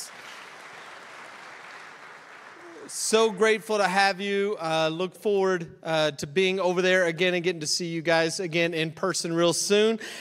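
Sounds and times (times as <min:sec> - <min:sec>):
audience applause: 0:00.0 - 0:03.2
speech: 0:02.9 - 0:10.2.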